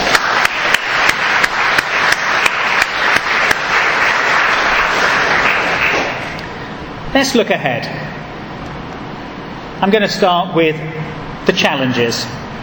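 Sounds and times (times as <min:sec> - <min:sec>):
round of applause: 0:00.0 - 0:06.4
speech: 0:07.2 - 0:08.2, 0:09.8 - 0:12.4.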